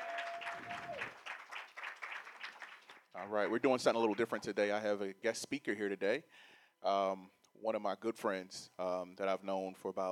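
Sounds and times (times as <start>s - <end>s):
audience applauding: 0.0s - 3.1s
speech: 3.2s - 10.0s.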